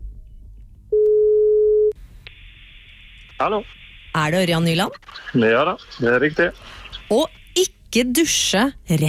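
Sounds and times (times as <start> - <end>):
telephone ringback tone: 1.0 - 1.9
speech: 3.4 - 9.0.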